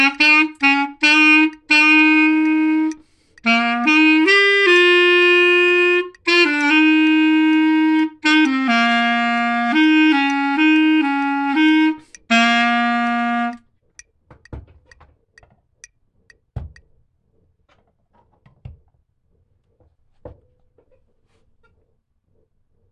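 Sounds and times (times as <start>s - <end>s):
boogie bass melody: 0.0s - 13.6s.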